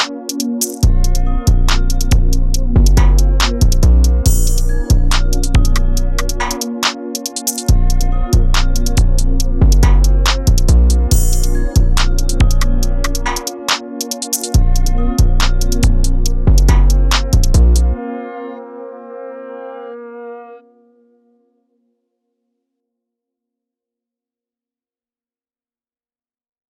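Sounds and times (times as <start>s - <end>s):
dark trap beat: 0.0s - 18.0s.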